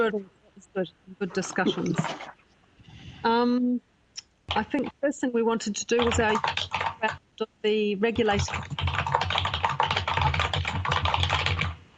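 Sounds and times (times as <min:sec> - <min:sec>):
speech: 0:00.0 - 0:02.4, 0:03.2 - 0:03.9, 0:04.5 - 0:09.0
fast typing on a computer keyboard through an unmuted microphone: 0:04.5 - 0:04.9, 0:05.9 - 0:07.2, 0:08.1 - 0:11.8.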